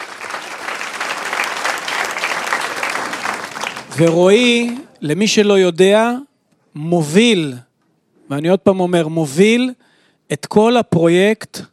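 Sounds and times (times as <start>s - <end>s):
audience applause: 0.0s - 4.9s
speech: 4.0s - 7.7s, 8.3s - 11.7s.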